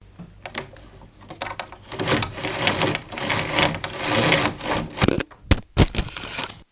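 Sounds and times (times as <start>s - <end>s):
window blinds pulled open: 1.2s - 5.2s, 5.9s - 6.6s.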